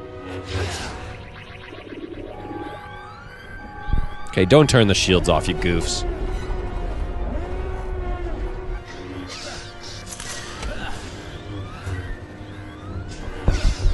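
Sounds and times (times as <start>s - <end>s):
Star Wars spaceship alarm sound effect: 0.0s - 13.9s
speech: 0.4s - 1.0s, 4.4s - 6.1s.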